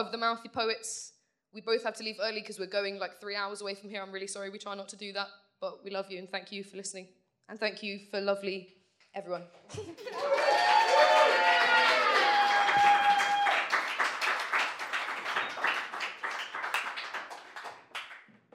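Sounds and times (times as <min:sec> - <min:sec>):
speech: 0:00.0 - 0:10.7
audience cheers and whoops: 0:10.0 - 0:13.9
audience applause: 0:10.0 - 0:18.3.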